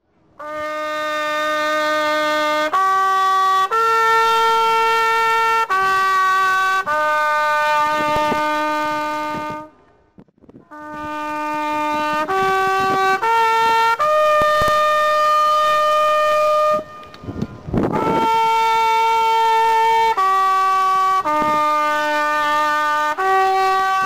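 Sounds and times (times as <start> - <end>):
trumpet call: 0.4 - 9.8, 10.6 - 24.0.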